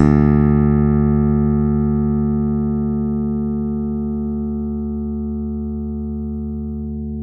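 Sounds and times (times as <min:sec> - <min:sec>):
bass open D2 string note: 0:00.0 - 0:07.2.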